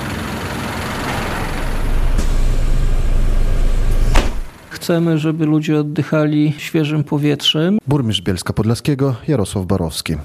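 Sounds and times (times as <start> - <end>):
city bus engine rumble: 0.0 - 4.7
bus air brakes hissing: 0.5 - 4.7
speech: 4.8 - 10.2.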